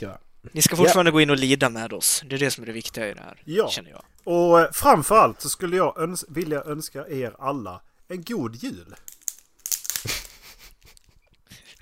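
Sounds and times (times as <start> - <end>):
speech: 0.0 - 9.1
crackling and snapping: 8.9 - 11.8.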